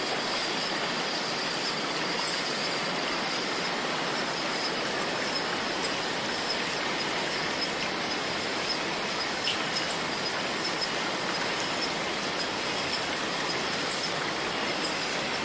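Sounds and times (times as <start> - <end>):
bright thin whine: 0.0 - 15.4
cicadas buzzing in the rainforest: 0.0 - 15.4
small ticks and clicks: 4.3 - 15.4.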